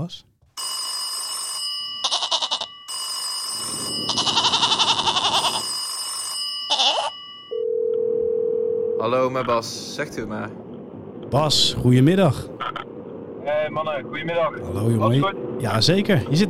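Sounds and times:
speech: 0.0s - 0.3s, 9.0s - 10.7s, 11.3s - 12.6s, 13.6s - 16.4s
phone call ringing tone: 0.6s - 9.2s.

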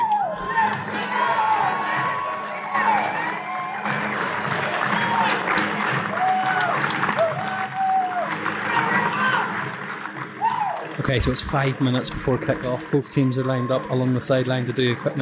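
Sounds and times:
cheers: 0.0s - 15.2s
scattered claps: 0.0s - 15.2s
whistles: 4.3s - 4.6s
speech: 11.1s - 15.2s.

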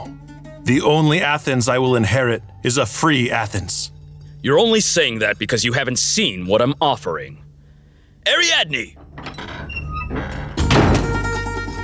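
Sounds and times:
quiet steady tonal hum: 0.1s - 11.8s
speech: 0.7s - 7.4s, 8.2s - 9.3s
sustained rumbling resonance: 8.8s - 11.4s
heavy doors swinging open with a deep thud: 8.8s - 11.8s.

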